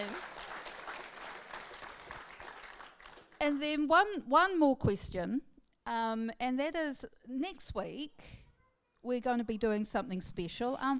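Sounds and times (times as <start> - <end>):
audience clapping: 0.0 - 3.4
speech: 3.4 - 8.4, 9.0 - 10.9.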